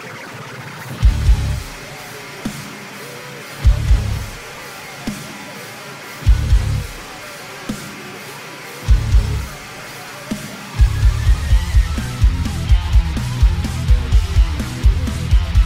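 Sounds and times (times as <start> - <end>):
extreme bass: 1.0 - 1.7, 3.7 - 4.4, 6.3 - 6.9, 8.9 - 9.5, 10.8 - 15.6.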